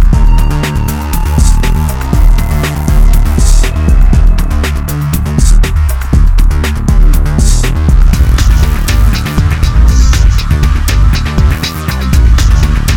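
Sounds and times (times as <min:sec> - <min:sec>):
menu music: 0:00.1 - 0:12.8.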